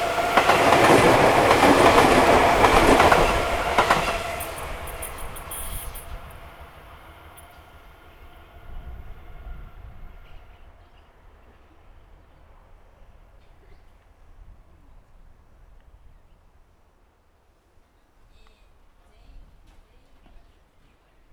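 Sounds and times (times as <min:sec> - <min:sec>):
up train passing: 0:00.0 - 0:12.8.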